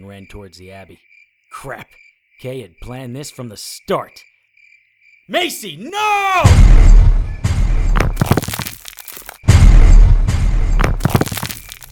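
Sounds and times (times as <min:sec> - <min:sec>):
speech: 0:00.0 - 0:04.3, 0:05.3 - 0:06.8
explosion blast: 0:06.4 - 0:08.6, 0:09.5 - 0:11.5.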